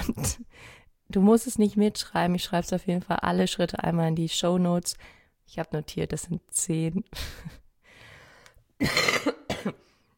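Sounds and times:
coughing: 0.0 - 0.4, 8.8 - 9.9
speech: 1.1 - 7.6, 8.8 - 9.8.

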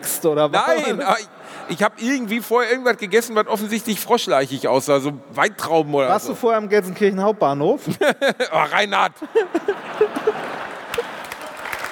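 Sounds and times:
speech: 0.2 - 10.4
laughter: 0.6 - 1.9, 7.8 - 11.6
applause: 10.4 - 11.9.

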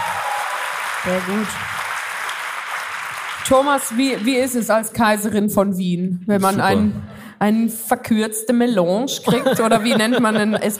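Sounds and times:
audience applause: 0.0 - 4.7
speech: 1.0 - 1.8, 3.4 - 10.7
laughter: 9.2 - 10.7.

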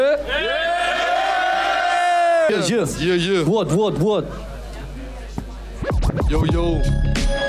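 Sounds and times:
audience cheering and yelling: 0.1 - 2.9
speech: 2.5 - 4.5, 6.3 - 7.3.

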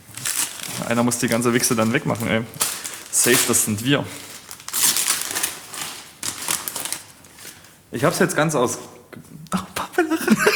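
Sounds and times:
crinkling plastic packaging being unwrapped: 0.0 - 7.9
speech: 0.9 - 4.3, 7.9 - 9.3
laughter: 9.6 - 10.5.

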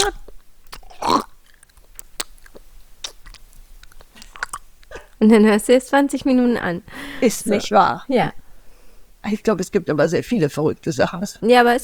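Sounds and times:
speech: 0.0 - 0.2, 5.2 - 8.4, 9.2 - 11.8
lip clicks: 0.0 - 5.2
wet mouth smacking: 0.0 - 5.2.

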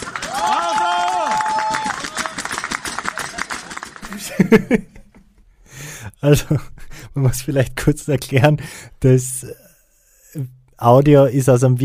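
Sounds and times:
people whooping: 0.0 - 4.1
audience clapping: 0.0 - 4.7
audience laughing: 3.1 - 5.4
speech: 4.4 - 5.0, 6.2 - 9.6, 10.3 - 11.8.

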